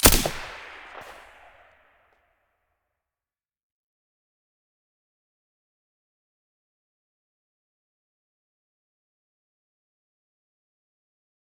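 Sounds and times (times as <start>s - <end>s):
VSS silenced rifle shot: 0.0s - 1.7s.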